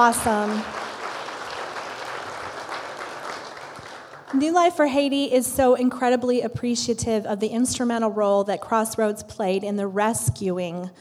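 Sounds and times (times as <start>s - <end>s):
speech: 0.0s - 0.8s, 4.3s - 10.9s
audience applause: 0.0s - 4.4s.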